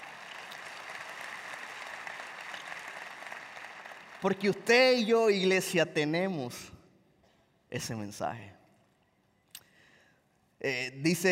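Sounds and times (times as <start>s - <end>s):
audience applause: 0.0s - 5.4s
speech: 4.2s - 6.8s, 7.7s - 8.6s, 10.6s - 11.3s.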